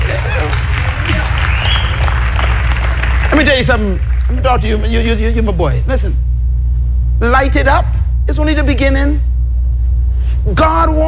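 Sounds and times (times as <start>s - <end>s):
crowd clapping loudly: 0.0s - 4.8s
heavy low rumble: 0.0s - 11.0s
speech: 3.6s - 6.4s, 7.2s - 9.3s, 10.4s - 11.0s.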